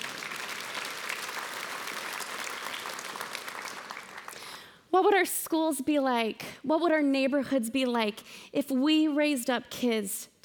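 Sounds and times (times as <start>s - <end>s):
audience clapping: 0.0s - 4.7s
speech: 4.9s - 10.4s.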